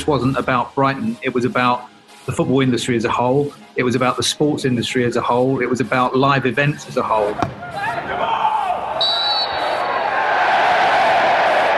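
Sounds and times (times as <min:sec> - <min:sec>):
speech: 0:00.0 - 0:08.3
football crowd cheering at Brighton's Amex Stadium at a friendly against Chelsea: 0:07.4 - 0:11.7.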